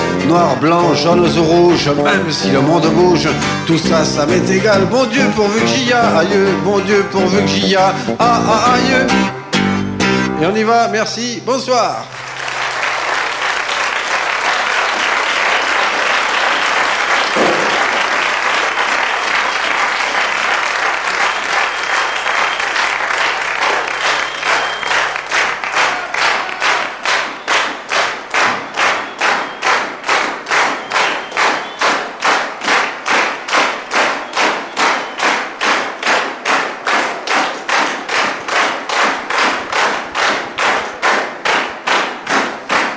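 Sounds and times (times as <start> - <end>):
speech: 0.3 - 9.4, 10.4 - 12.2
theatre audience applause: 12.1 - 42.9.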